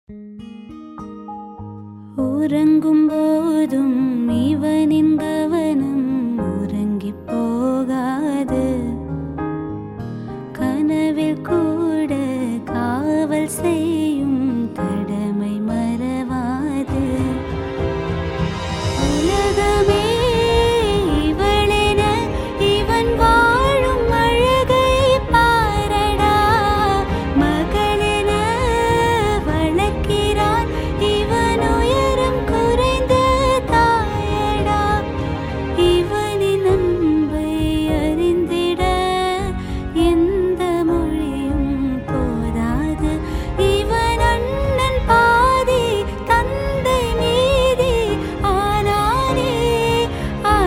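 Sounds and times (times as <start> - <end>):
woman singing a song: 2.2 - 9.2, 10.5 - 17.9, 18.8 - 50.6.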